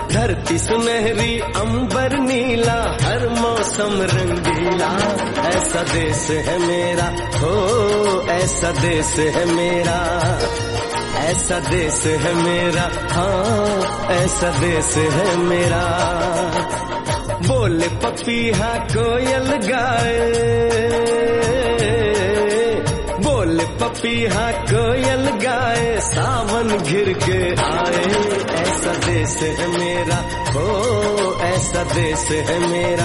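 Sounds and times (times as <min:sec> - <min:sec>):
Hindi song: 0:00.0 - 0:33.0.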